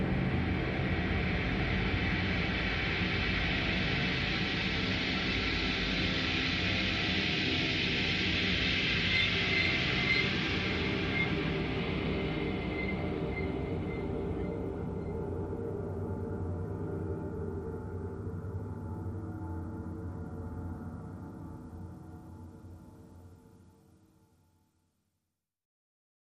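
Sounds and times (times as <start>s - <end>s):
drones: 0.0s - 20.6s.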